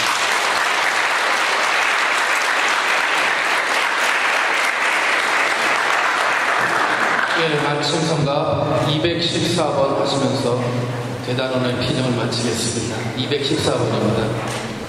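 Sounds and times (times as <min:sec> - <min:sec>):
applause: 0:00.0 - 0:07.6
speech: 0:07.4 - 0:14.7.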